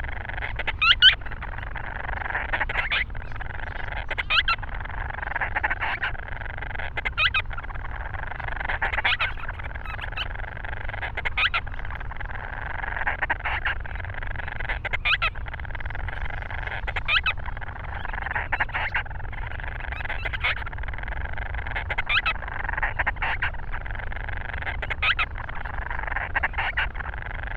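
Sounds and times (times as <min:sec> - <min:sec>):
Grant's storm petrel raspy chattering calls: 0:00.0 - 0:27.5.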